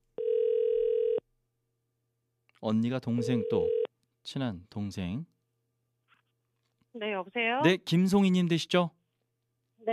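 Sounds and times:
telephone ringing tone while a call connects: 0.2 - 1.2, 3.2 - 3.9
speech: 2.6 - 5.3, 6.9 - 9.0.

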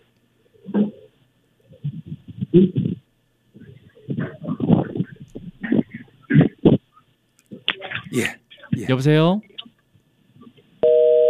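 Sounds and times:
faint telephone line noise: 0.0 - 11.2
speech: 2.6 - 2.8, 8.2 - 9.5
steady electronic telephone tone after call disconnects: 10.8 - 11.2.

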